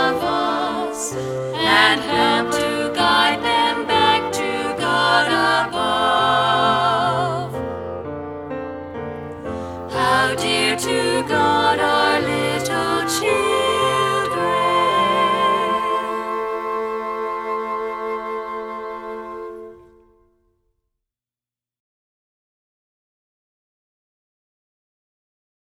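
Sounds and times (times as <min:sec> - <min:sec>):
song with words and music: 0:00.0 - 0:20.3.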